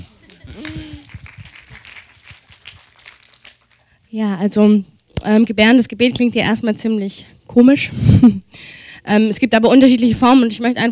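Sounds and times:
laughter: 0.0s - 1.1s
audience applause: 0.2s - 3.9s
speech: 4.1s - 10.9s.

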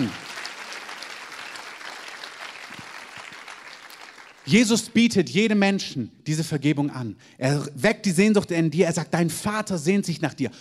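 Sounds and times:
speech: 0.0s - 0.2s, 4.5s - 10.6s
crowd applauding: 0.0s - 4.7s.

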